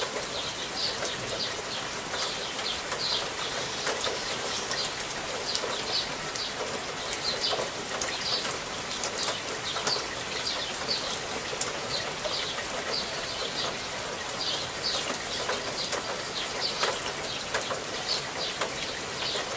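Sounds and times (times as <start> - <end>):
rain trickling: 0.0 - 19.5.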